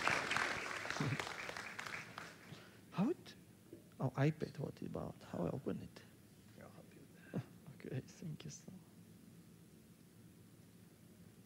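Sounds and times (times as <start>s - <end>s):
audience applause: 0.0s - 2.6s
speech: 4.0s - 6.1s, 7.3s - 8.8s.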